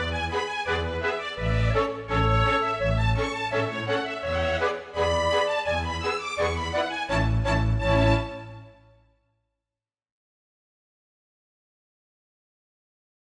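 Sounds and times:
polka music: 0:00.0 - 0:08.9.

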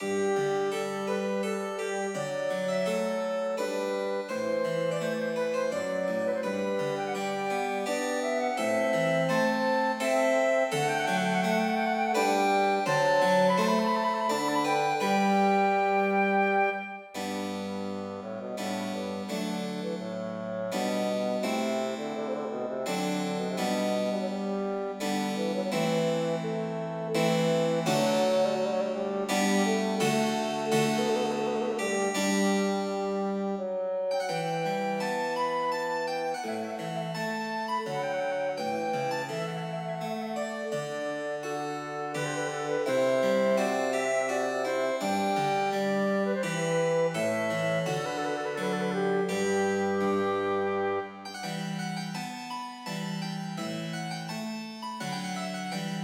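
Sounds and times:
flute, bassoon and piano piece: 0:00.0 - 0:56.0.

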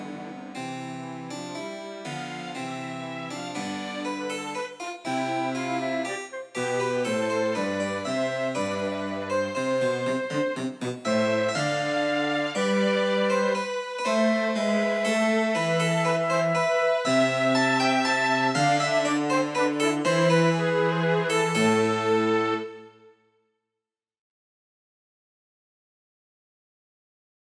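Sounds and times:
harpsichord playing a minuet: 0:00.0 - 0:22.8
cello playing a minuet: 0:00.0 - 0:23.0
violin playing a minuet: 0:00.0 - 0:23.1
flute playing a minuet: 0:02.6 - 0:23.1.

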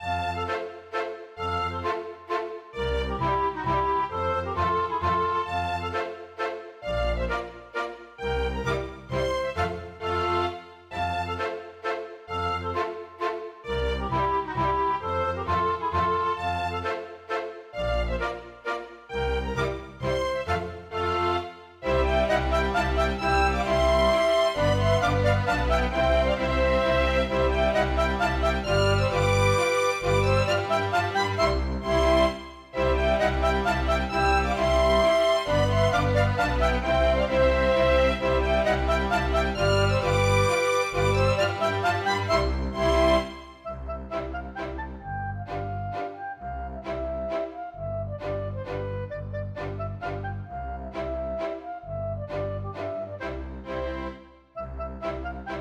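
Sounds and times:
polka mazurka music: 0:00.0 - 0:55.5.

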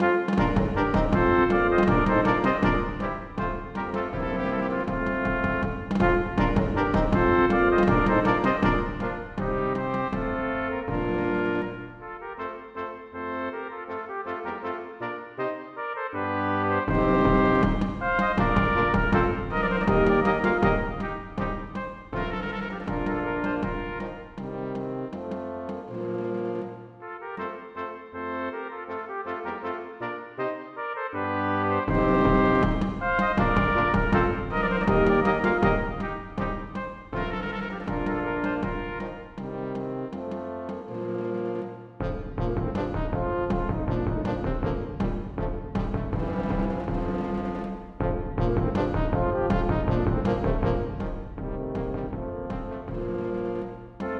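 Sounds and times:
brass quintet playing an aria: 0:00.0 - 0:54.1.

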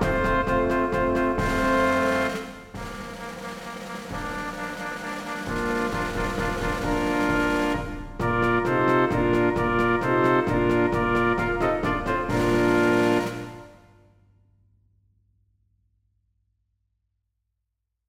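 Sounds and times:
brass quintet: 0:00.0 - 0:14.0
drums ad lib: 0:00.0 - 0:14.0.

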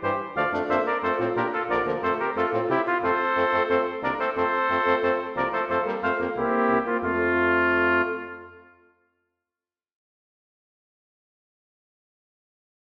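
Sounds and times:
march for brass quintet: 0:00.0 - 0:08.9.

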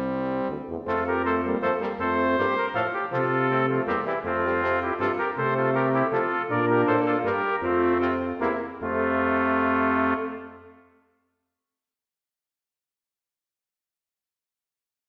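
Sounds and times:
brass quintet playing a minuet: 0:00.0 - 0:11.0.

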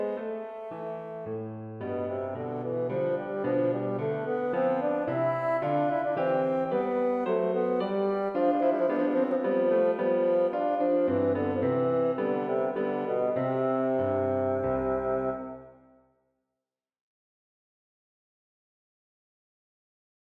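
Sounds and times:
bassoon playing a minuet: 0:00.0 - 0:16.0
piano playing a minuet: 0:00.0 - 0:16.0.

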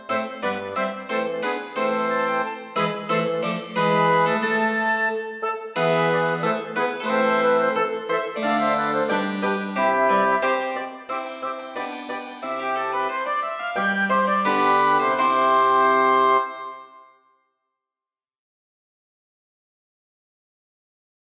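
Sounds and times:
wind quartet playing a gavotte and bourrée: 0:00.0 - 0:17.0
harpsichord: 0:00.0 - 0:17.1.

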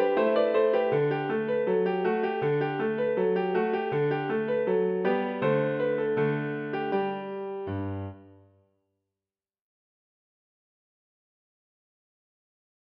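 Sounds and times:
piano march: 0:00.0 - 0:08.5.

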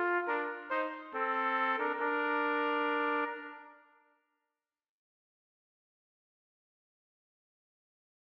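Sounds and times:
trumpet duet minuet: 0:00.0 - 0:03.9.

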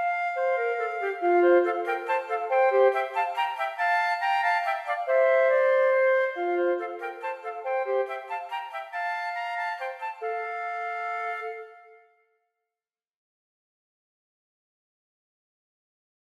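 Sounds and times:
minuet for flute duet: 0:00.0 - 0:12.2.

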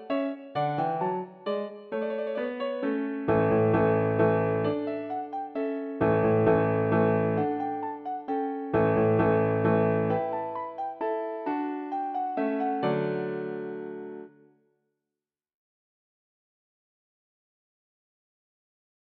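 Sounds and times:
piano minuet: 0:00.0 - 0:14.5.

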